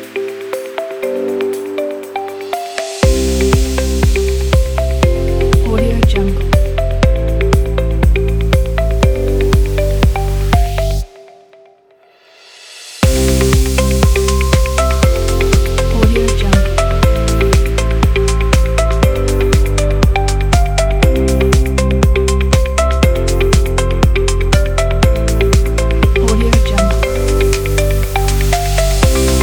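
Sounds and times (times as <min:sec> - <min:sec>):
music: 0:00.0 - 0:29.4.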